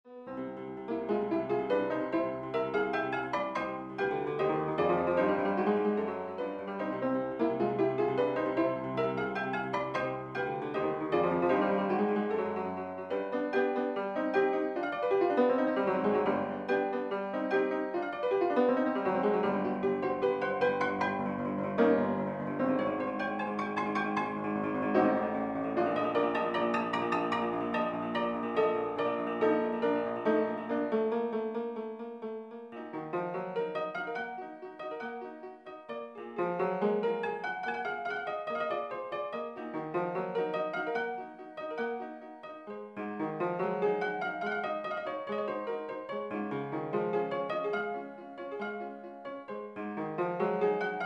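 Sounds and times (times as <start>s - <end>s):
realistic fortepiano piece: 0.0s - 51.0s.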